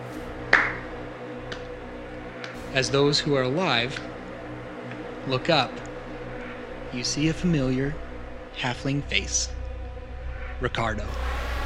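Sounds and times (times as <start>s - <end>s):
single sharp hand clap with echo: 0.5s - 0.9s, 1.5s - 1.7s
speech: 2.7s - 4.2s, 5.3s - 5.8s, 6.9s - 8.0s, 8.6s - 9.6s, 10.6s - 11.3s.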